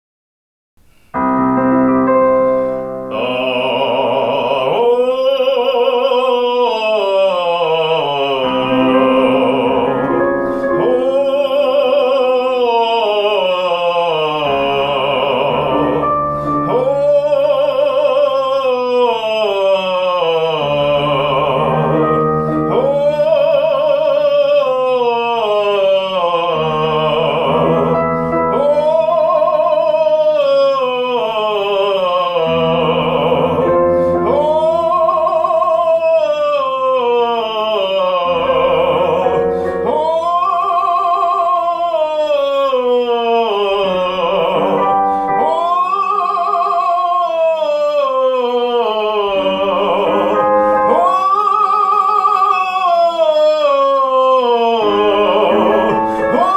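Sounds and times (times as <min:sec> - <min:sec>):
baritone voice: 0:00.9 - 0:56.5.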